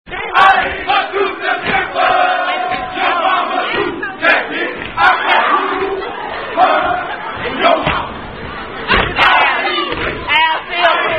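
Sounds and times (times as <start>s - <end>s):
fraternity chanting: 0.1s - 11.1s.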